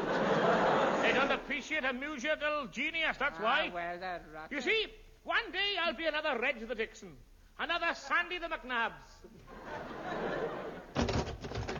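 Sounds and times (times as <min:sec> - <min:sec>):
laughter: 0:00.0 - 0:01.8, 0:09.3 - 0:11.1
soft hiss: 0:01.1 - 0:09.8
speech: 0:01.3 - 0:10.5
door sound effect rattling and banging: 0:10.9 - 0:11.7.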